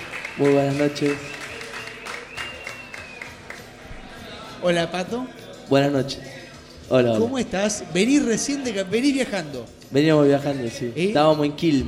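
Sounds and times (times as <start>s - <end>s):
small audience applauding a guest guitarist: 0.0s - 3.8s
speech: 0.4s - 1.4s, 4.6s - 6.3s, 6.9s - 11.8s.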